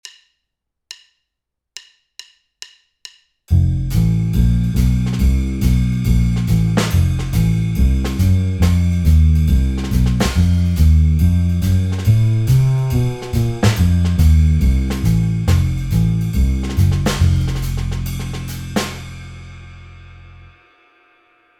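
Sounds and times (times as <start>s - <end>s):
F7b9 chord backing track without piano: 3.5s - 19.8s.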